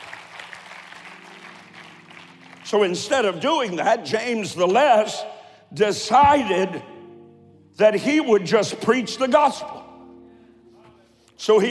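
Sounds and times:
crowd clapping: 0.0s - 3.4s
speech: 2.7s - 6.9s, 7.8s - 9.8s, 11.4s - 11.6s.

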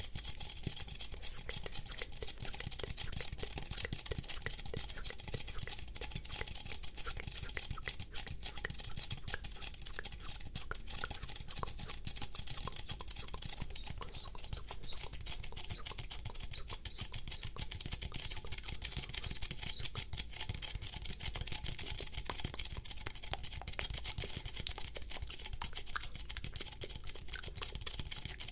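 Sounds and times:
sticky tapping: 0.0s - 28.5s
fast aggressive mouth sounds: 1.0s - 20.0s.

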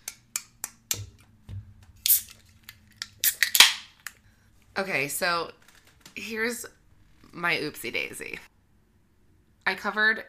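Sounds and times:
beer can being cracked open: 2.0s - 4.1s
speech: 4.8s - 5.6s, 6.2s - 8.5s, 9.7s - 10.2s.

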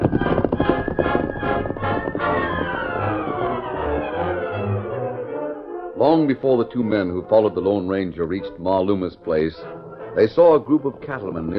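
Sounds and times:
hoofbeats of the Lone Ranger's horse Silver riding off: 0.0s - 4.0s
sustained tonal swell: 0.2s - 7.8s
speech: 6.1s - 11.5s.

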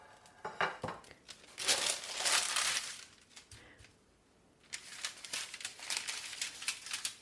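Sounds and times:
crinkly papery peeling of a warm fruit: 1.3s - 3.6s, 4.6s - 7.2s.

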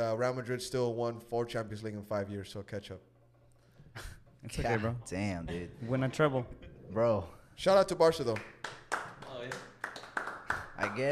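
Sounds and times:
speech: 0.0s - 3.1s, 4.0s - 8.8s, 10.8s - 11.0s
weak uneven hand claps: 8.3s - 11.0s.

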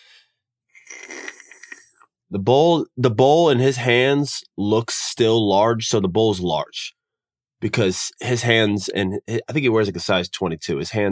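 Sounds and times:
voice imitating slurping soup: 0.7s - 2.1s
speech: 2.3s - 7.0s, 7.6s - 11.0s.

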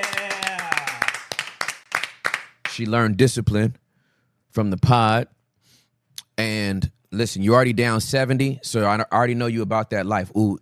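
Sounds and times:
hands clapping: 0.0s - 2.9s
speech: 2.8s - 3.8s, 4.5s - 5.4s, 6.4s - 10.5s.

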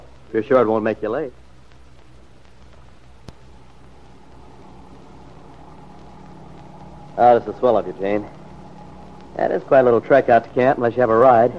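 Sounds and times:
speech: 0.3s - 1.4s, 7.2s - 8.4s, 9.4s - 11.5s
old jalopy engine running: 3.5s - 11.5s.

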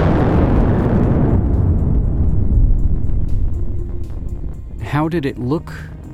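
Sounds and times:
Krakatoa volcanic eruption explosion: 0.0s - 5.1s
speech: 5.0s - 6.0s.

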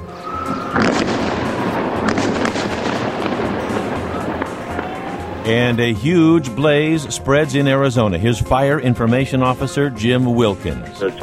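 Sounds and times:
explosions from NATO airstrikes on Colonel Gaddafi's compound in Tripoli, Libya: 0.5s - 5.7s
speech: 5.5s - 11.2s.

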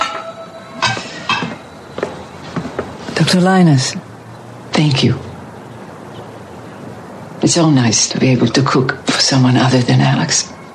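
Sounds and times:
dishes clinking as a plate is picked up during cooking: 0.0s - 3.0s
speech: 3.2s - 4.1s, 4.8s - 5.3s, 7.4s - 10.6s.

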